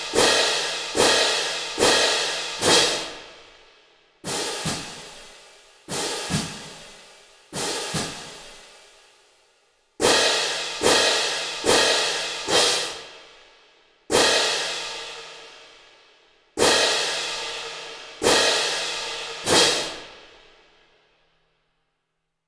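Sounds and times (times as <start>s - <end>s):
drumline cymbals: 0.0s - 3.5s, 4.2s - 9.4s, 10.0s - 13.4s, 14.1s - 15.8s, 16.6s - 20.5s.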